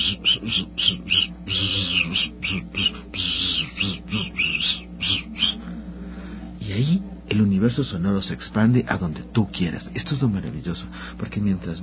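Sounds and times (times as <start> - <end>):
high lip whistle with fast wavering vibrato: 0.0 - 5.6
speech: 0.1 - 1.0, 7.7 - 11.8.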